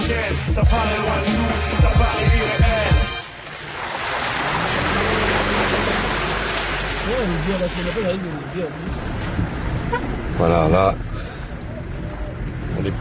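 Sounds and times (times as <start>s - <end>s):
speech: 0.1s - 2.8s, 7.1s - 9.2s, 9.9s - 11.3s, 12.8s - 12.9s
water surging around a boat in a flooded passage: 2.9s - 9.9s.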